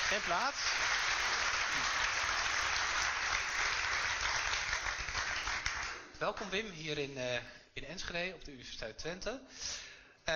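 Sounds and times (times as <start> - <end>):
audience applause: 0.0 - 6.0
speech: 0.1 - 1.0, 6.2 - 10.3.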